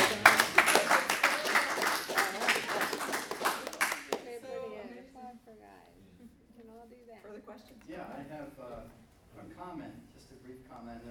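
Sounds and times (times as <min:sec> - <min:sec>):
audience applause: 0:00.0 - 0:04.4.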